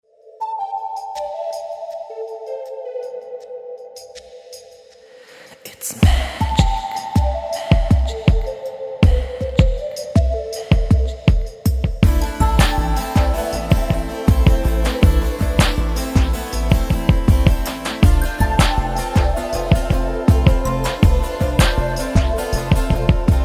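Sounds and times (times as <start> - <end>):
ambient music: 0.0 - 5.3, 6.0 - 23.4.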